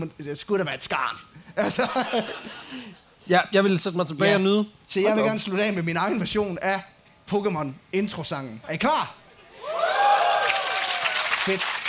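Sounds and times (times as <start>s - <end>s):
speech: 0.0s - 9.2s, 11.4s - 11.7s
laughter: 1.6s - 3.0s
audience applause: 9.6s - 11.8s.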